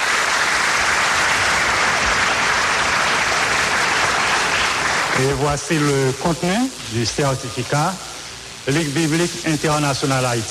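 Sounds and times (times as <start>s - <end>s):
audience applauding warmly: 0.0s - 6.7s
speech: 5.2s - 8.1s, 8.7s - 10.4s.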